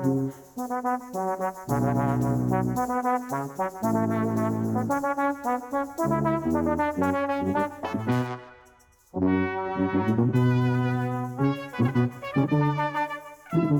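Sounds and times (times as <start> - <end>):
Soviet military march music: 0.0 - 13.7.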